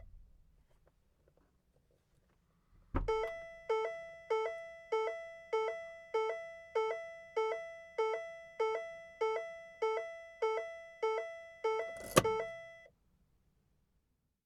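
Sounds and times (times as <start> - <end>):
open car beeps: 3.0 - 12.9.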